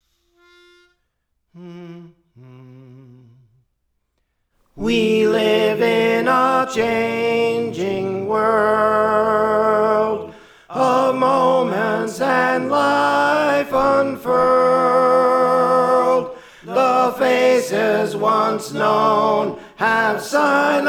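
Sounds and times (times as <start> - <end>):
tenor singing: 4.8 - 20.8.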